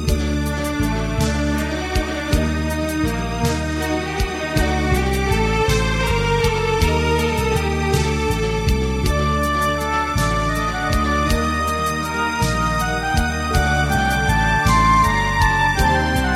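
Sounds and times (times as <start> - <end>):
flute: 0.2 - 16.3.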